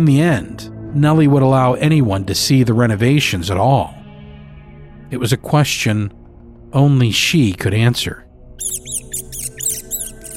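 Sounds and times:
speech: 0.0s - 4.0s, 5.1s - 8.8s
rat squealing: 8.6s - 10.3s.

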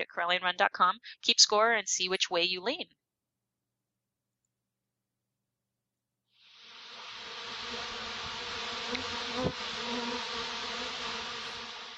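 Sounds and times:
speech: 0.0s - 3.0s
buzzing bee sound effect: 6.6s - 11.9s.

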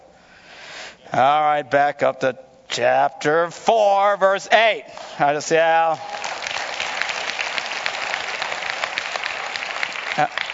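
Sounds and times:
speech: 1.1s - 6.2s, 10.2s - 10.4s
audience clapping: 4.9s - 10.5s.

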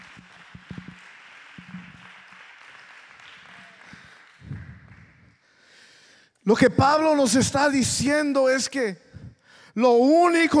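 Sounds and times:
audience applause: 0.0s - 5.4s
speech: 6.5s - 9.0s, 9.8s - 10.5s.

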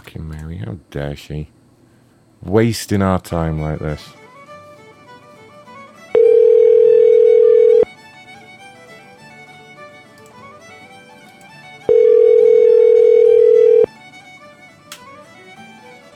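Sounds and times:
faint hiss: 0.0s - 16.1s
speech: 0.7s - 1.6s, 2.4s - 4.2s
ringback tone of an unanswered outgoing telephone call: 6.1s - 7.9s, 11.9s - 13.9s.

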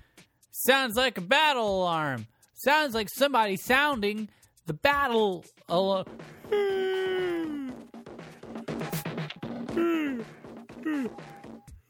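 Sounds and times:
speech: 0.6s - 7.0s, 9.8s - 11.4s
big yawn: 6.5s - 7.9s, 9.7s - 11.3s.

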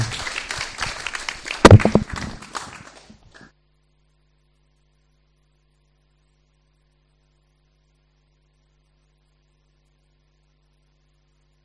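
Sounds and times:
big applause from audience: 0.0s - 3.5s.

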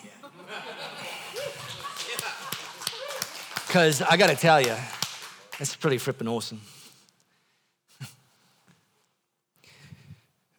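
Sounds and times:
laughter: 0.0s - 5.6s
scattered claps: 1.4s - 6.1s
speech: 3.7s - 5.0s, 5.6s - 6.7s.

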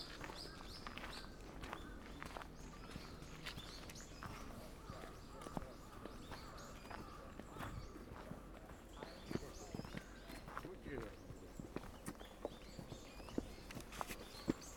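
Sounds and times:
footsteps on the gravel approach path at Meiji Jingu: 0.0s - 14.7s
faint voices: 4.2s - 12.2s.

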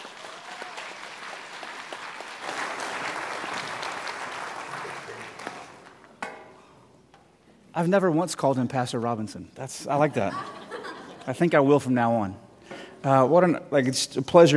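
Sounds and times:
church congregation applauding a guest pastor: 0.0s - 6.2s
laughter: 4.7s - 5.8s, 10.0s - 11.4s
speech: 7.8s - 10.6s, 11.2s - 12.4s, 13.0s - 14.5s.

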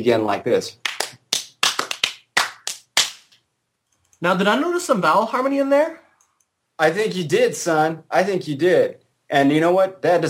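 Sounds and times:
speech: 0.0s - 0.8s, 4.2s - 6.0s, 6.8s - 10.2s
rhythmic hand clapping: 0.8s - 3.4s.

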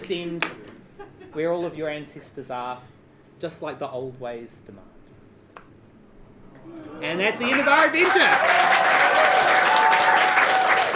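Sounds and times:
speech: 0.1s - 4.9s, 6.6s - 8.8s
audience applause: 7.1s - 10.9s.

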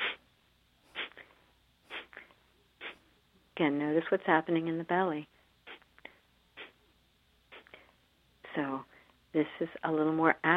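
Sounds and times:
breath blown out through the nostrils in a breathing exercise: 0.0s - 0.2s, 0.9s - 3.0s, 5.6s - 6.8s, 7.5s - 8.0s
speech: 3.6s - 5.3s, 9.4s - 10.5s.

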